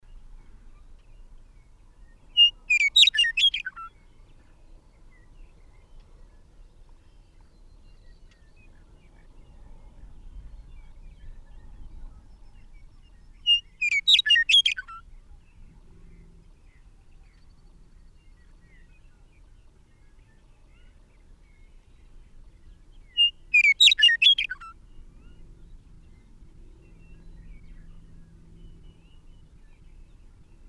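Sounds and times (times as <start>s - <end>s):
bird singing: 0.0s - 30.6s.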